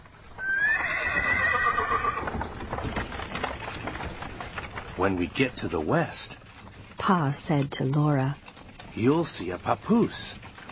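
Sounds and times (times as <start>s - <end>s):
horse hooves clopping as a horse-drawn wagon gets moving: 0.0s - 10.7s
horse giving a long high whinny: 0.4s - 2.7s
speech: 5.0s - 6.4s, 7.0s - 10.5s.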